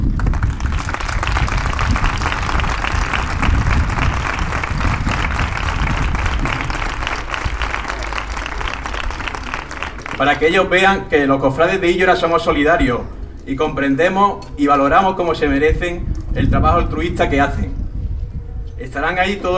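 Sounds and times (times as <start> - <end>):
audience applause: 0.0 - 10.5
speech: 10.2 - 17.8, 18.8 - 19.5.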